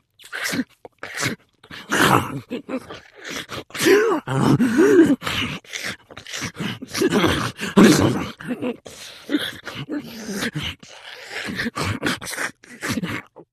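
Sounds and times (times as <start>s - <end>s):
zombie nervously eating food: 0.0s - 13.5s.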